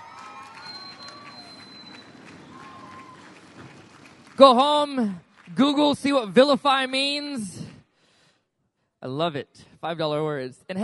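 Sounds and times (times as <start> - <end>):
audience applause: 0.0 - 6.0
speech: 4.4 - 7.6, 9.0 - 10.8.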